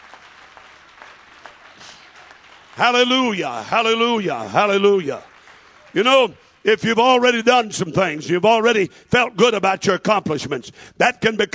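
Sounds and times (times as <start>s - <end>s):
audience clapping hands: 0.0s - 8.2s
speech: 2.8s - 5.3s, 6.0s - 11.5s.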